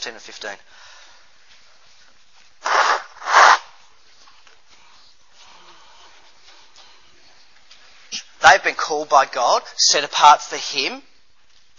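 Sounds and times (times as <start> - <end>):
speech: 0.0 - 1.0, 8.4 - 11.1
nose blowing: 2.6 - 3.8.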